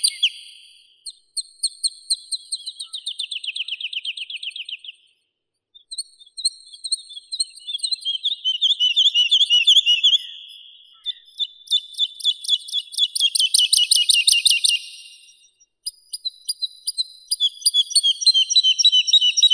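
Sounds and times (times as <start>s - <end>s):
woodlark Lullula arborea singing: 0.0s - 0.6s, 7.3s - 19.5s.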